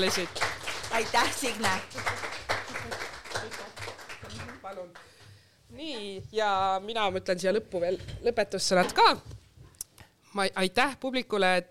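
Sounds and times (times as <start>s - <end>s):
speech: 0.0s - 2.2s, 5.7s - 9.3s, 10.3s - 11.7s
audience applause: 0.0s - 5.0s.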